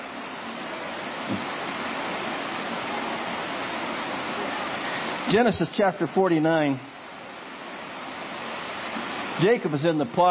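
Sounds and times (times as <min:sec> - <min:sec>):
rain hitting a tent: 0:00.0 - 0:10.2
speech: 0:01.3 - 0:01.5, 0:05.3 - 0:06.9, 0:09.4 - 0:10.2.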